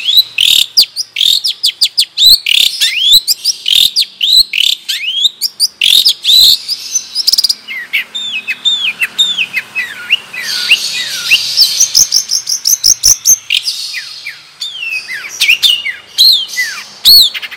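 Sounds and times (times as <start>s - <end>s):
Madura long-tailed shrike singing: 0.0s - 17.5s.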